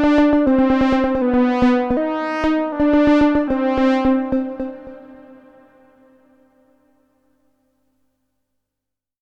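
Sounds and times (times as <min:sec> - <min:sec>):
modular synthesizer patch with oscillator and drum synthesizer: 0:00.0 - 0:06.7.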